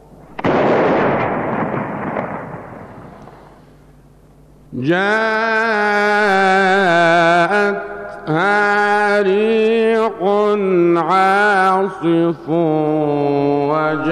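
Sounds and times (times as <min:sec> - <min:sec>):
Ramadan imsak cannon firing: 0:00.3 - 0:03.6
speech: 0:04.8 - 0:06.2
voice chanting melodically: 0:04.8 - 0:14.1.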